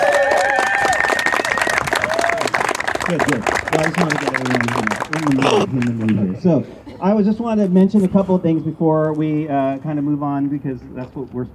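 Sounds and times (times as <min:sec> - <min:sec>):
round of applause: 0:00.0 - 0:06.1
speech: 0:03.1 - 0:11.5.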